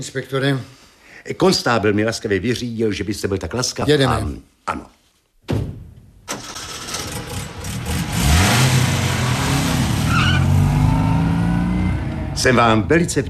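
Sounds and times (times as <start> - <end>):
speech: 0.0 - 5.6, 12.4 - 13.2
early motor car engine starting and driving off: 6.3 - 12.9.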